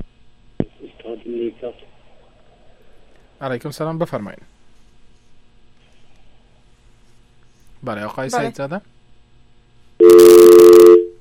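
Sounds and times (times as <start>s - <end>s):
speech: 1.1s - 2.0s, 3.4s - 4.5s, 7.8s - 8.9s
telephone tone after a dropped phone call: 10.0s - 11.1s.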